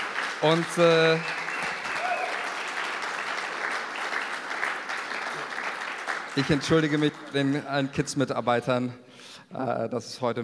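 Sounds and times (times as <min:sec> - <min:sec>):
big round of applause: 0:00.0 - 0:07.9
speech: 0:00.4 - 0:01.4, 0:06.4 - 0:10.4.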